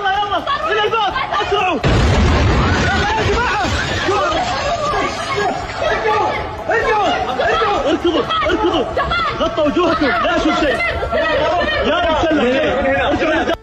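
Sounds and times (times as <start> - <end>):
crowd shouting and chatter: 0.0 - 13.6
missile explosion boom at an airport: 1.8 - 5.2
laughter: 2.6 - 13.6.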